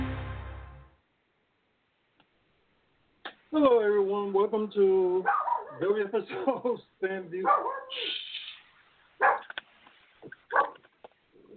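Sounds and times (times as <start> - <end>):
speech: 3.6 - 8.2
dog barking: 5.2 - 5.9, 7.4 - 8.1, 9.2 - 9.5, 10.5 - 10.8.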